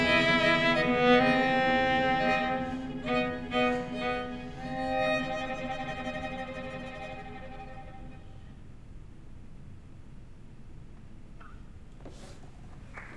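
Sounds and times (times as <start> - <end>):
string quartet: 0.0 - 8.6.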